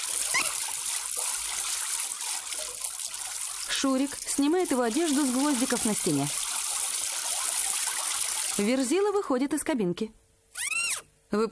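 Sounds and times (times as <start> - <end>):
spitting out water: 0.0 - 8.9
speech: 3.8 - 6.4, 8.6 - 10.2, 11.3 - 11.5.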